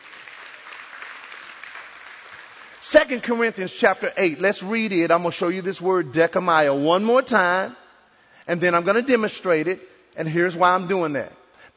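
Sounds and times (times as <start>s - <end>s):
audience applause: 0.0s - 2.9s
speech: 2.9s - 7.8s, 8.5s - 11.4s.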